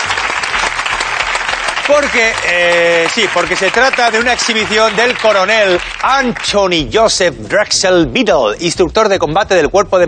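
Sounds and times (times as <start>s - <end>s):
audience applause: 0.0s - 7.2s
speech: 1.9s - 10.0s.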